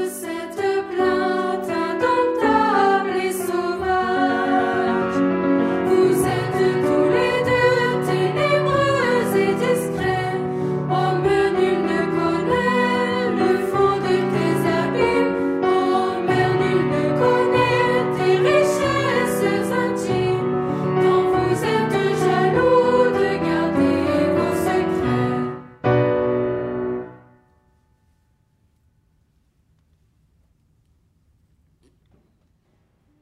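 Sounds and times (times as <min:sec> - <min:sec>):
chanting: 0:00.0 - 0:25.5
piano: 0:00.0 - 0:29.1.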